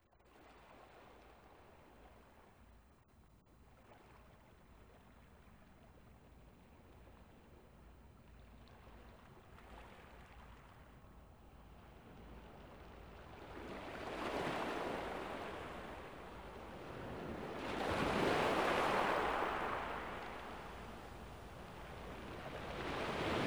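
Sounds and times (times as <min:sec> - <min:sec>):
nature sounds of ocean shores: 0:11.6 - 0:23.4.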